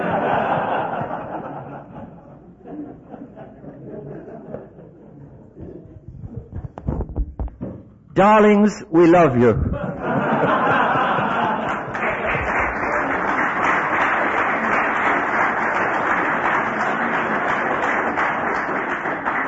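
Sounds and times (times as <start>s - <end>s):
laughter: 0.0s - 6.7s, 9.4s - 15.0s
speech: 8.2s - 9.8s
audience applause: 10.4s - 19.4s.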